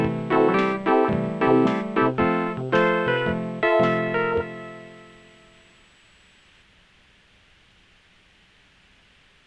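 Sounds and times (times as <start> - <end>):
trite instrumental music: 0.0 - 5.7.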